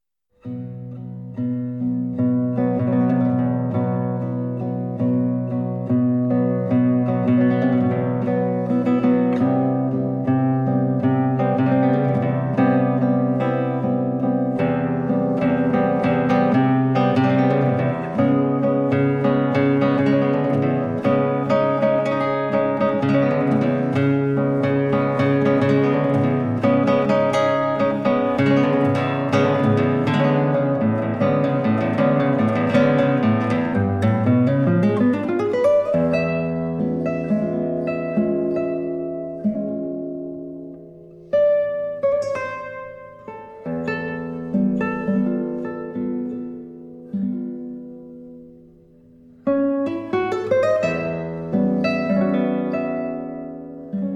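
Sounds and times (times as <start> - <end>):
guitar etude: 0.0 - 54.1.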